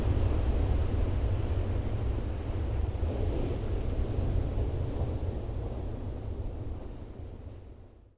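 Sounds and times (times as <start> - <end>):
large surf breaking at a point break on the Oregon coast: 0.2 - 6.7.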